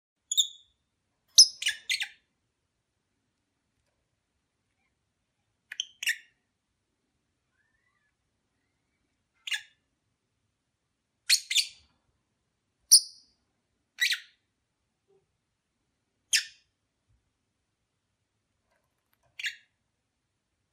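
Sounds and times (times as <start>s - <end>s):
lovebird chirps during courtship: 0.3s - 2.3s, 5.7s - 6.4s, 9.4s - 9.8s, 11.3s - 11.8s, 12.9s - 13.3s, 14.0s - 14.4s, 16.3s - 16.7s, 19.4s - 19.8s.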